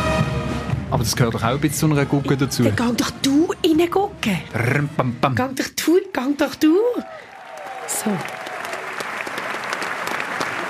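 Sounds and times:
speech: 0.9s - 7.3s, 7.9s - 8.4s
audience applause: 6.9s - 10.6s.

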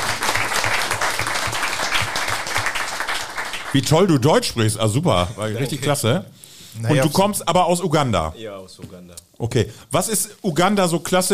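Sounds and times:
audience applause: 0.0s - 3.9s
speech: 3.7s - 11.3s.

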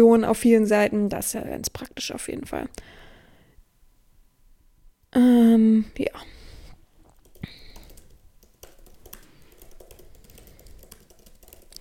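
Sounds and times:
speech: 0.0s - 3.0s, 5.2s - 6.4s
typing a reply on a computer keyboard: 7.1s - 11.7s.

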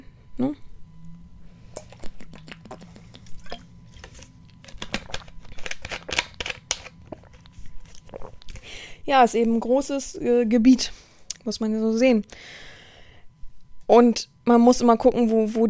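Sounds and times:
speech: 0.4s - 0.7s, 9.1s - 12.7s, 13.9s - 15.6s
someone drinking a beverage: 1.8s - 3.7s.

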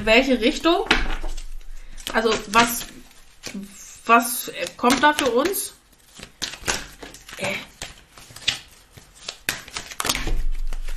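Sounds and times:
speech: 0.0s - 1.1s, 2.1s - 5.8s
deck of cards shuffled during a card reading: 1.0s - 10.9s.

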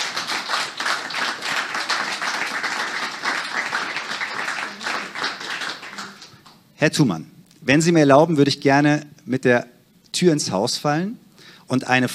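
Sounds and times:
audience applause welcoming a guest: 0.0s - 6.6s
speech: 6.8s - 12.1s.

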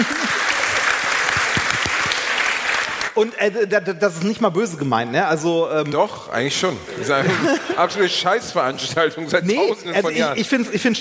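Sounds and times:
laughter: 0.0s - 0.7s, 6.9s - 8.3s
restrained applause: 0.0s - 3.4s
speech: 3.2s - 11.0s.

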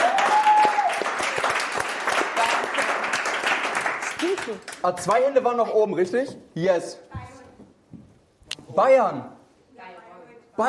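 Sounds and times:
audience applause: 0.0s - 4.9s
speech: 4.4s - 7.1s, 8.8s - 9.4s.

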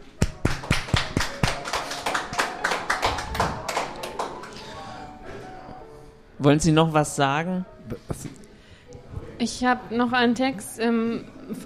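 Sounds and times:
audience applause: 0.2s - 4.6s
speech: 6.4s - 8.3s, 9.4s - 11.6s.

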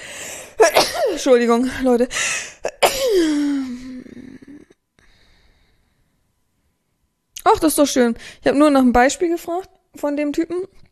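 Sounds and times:
person sneezing: 0.6s - 1.2s, 2.2s - 4.6s
speech: 1.2s - 2.5s, 7.5s - 10.8s.

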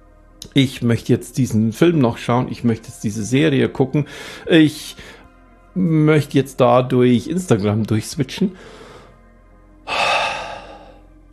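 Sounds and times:
speech: 0.5s - 5.2s, 5.8s - 8.8s
deliberate loud exhale: 9.9s - 11.0s.

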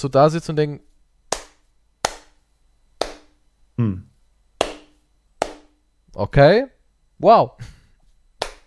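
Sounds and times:
speech: 0.0s - 0.9s, 6.2s - 7.8s
hand clapping: 1.3s - 2.4s, 3.0s - 3.4s, 4.6s - 5.8s, 8.4s - 8.6s.

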